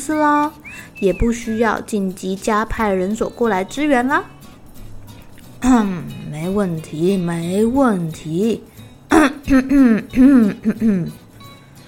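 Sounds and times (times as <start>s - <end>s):
speech: 0.0s - 4.4s, 5.6s - 11.2s
person coughing: 9.1s - 11.2s.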